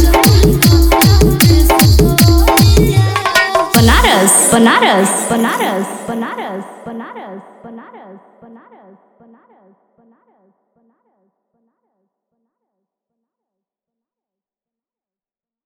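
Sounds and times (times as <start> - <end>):
Bhojpuri DJ remix song: 0.0 - 7.6.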